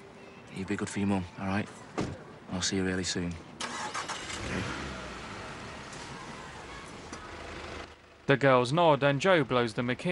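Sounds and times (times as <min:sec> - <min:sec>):
broadband road noise: 0:00.0 - 0:10.1
speech: 0:00.6 - 0:03.5, 0:04.4 - 0:04.8, 0:08.3 - 0:10.1
car engine pulling away and driving off: 0:03.6 - 0:10.1.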